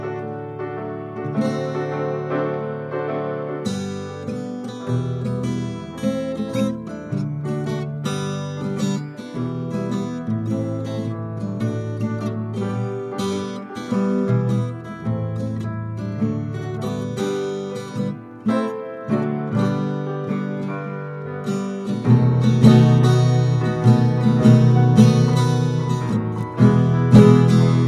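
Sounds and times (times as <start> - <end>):
guitar: 0.0 - 27.8
piano: 0.0 - 27.8.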